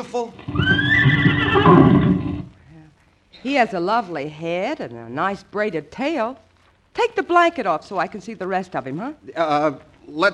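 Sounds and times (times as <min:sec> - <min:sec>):
speech: 0:00.0 - 0:02.1, 0:03.4 - 0:10.3
horse neighing: 0:00.3 - 0:02.6.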